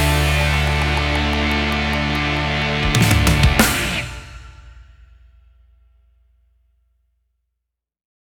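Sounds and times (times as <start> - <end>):
rock music: 0.0 - 4.8.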